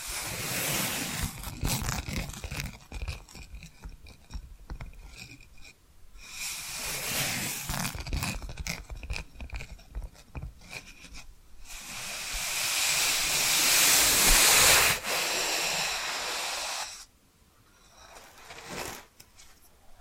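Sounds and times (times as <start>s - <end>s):
loud bright hissing scratch: 0.0s - 4.4s, 5.0s - 17.1s
tapping and scratching: 1.2s - 5.8s, 7.6s - 11.3s.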